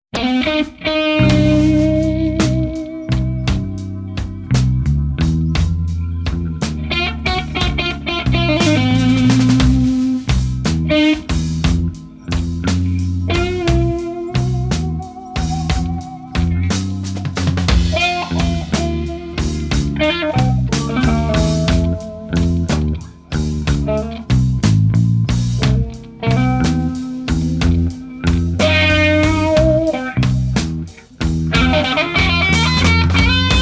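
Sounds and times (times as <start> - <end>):
instrumental blues: 0.1 - 33.6.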